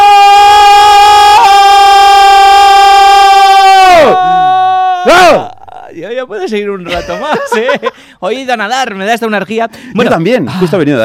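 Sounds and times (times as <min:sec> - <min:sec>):
mass group scream: 0:00.0 - 0:05.6
speech: 0:06.0 - 0:11.0
laughter: 0:06.8 - 0:08.0.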